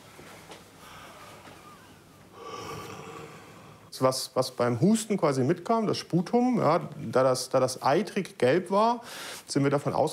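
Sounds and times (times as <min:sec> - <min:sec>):
deep open-mouth breathing during lung auscultation: 0:00.8 - 0:03.9
speech: 0:04.0 - 0:10.1.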